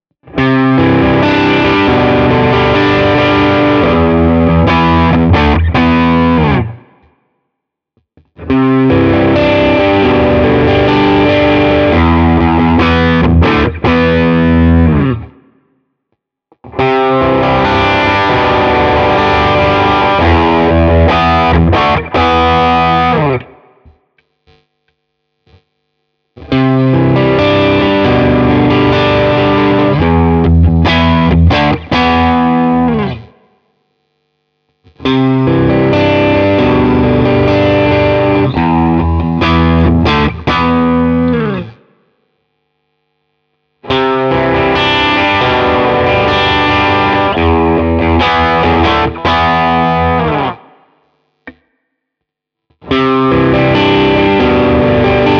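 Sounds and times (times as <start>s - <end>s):
Hagström electric guitar mid gain riff: 0.2s - 7.1s, 8.2s - 15.6s, 16.5s - 23.9s, 26.4s - 33.5s, 34.9s - 42.0s, 43.8s - 51.6s, 52.8s - 55.3s.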